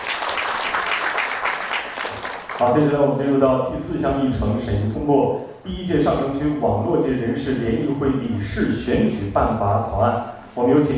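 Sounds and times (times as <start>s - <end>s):
meeting attendees applauding to approve a charter: 0.0s - 2.7s
speech: 2.6s - 10.9s.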